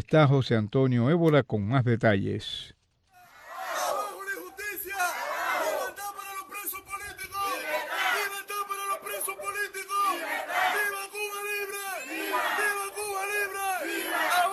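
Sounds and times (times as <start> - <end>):
speech: 0.0 - 2.8
protest crowd shouting in the street in Cuba: 3.2 - 14.5.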